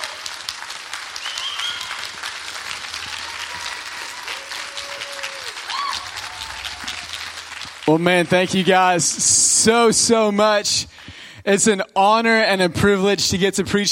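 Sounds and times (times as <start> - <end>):
people whooping: 0.0 - 9.2
church congregation applauding to welcome a minister: 0.0 - 10.1
speech: 7.9 - 13.9.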